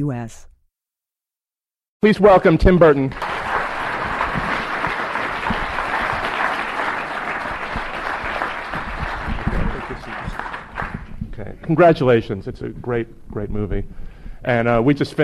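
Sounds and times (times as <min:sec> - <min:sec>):
speech: 0:00.0 - 0:00.5, 0:02.0 - 0:03.2, 0:11.7 - 0:15.2
audience applause: 0:02.9 - 0:11.2.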